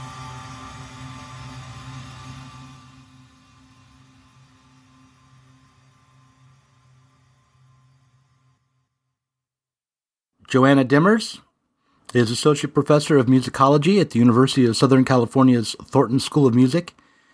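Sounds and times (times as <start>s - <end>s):
experimental drone music of layered tones: 0.0s - 8.2s
steady low hums: 0.0s - 8.6s
speech: 10.5s - 11.5s, 12.1s - 17.0s.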